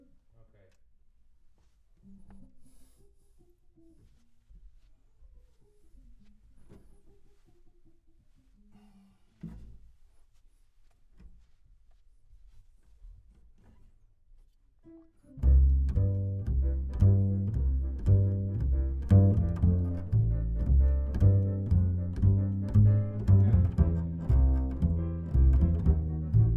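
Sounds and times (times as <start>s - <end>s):
bass: 15.3s - 26.5s.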